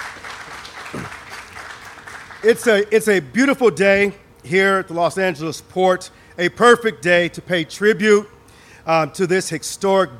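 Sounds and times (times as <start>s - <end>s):
round of applause: 0.0s - 2.8s
speech: 2.4s - 10.1s.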